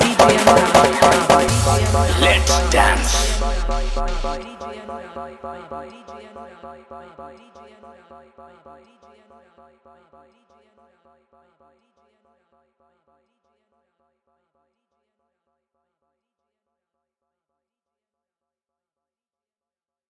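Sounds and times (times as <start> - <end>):
Bhojpuri dholak drum with bass: 0.0 - 4.4.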